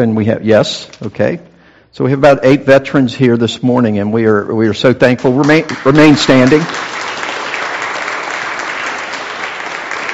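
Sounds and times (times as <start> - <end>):
speech: 0.0 - 7.0
audience applause: 5.5 - 10.1.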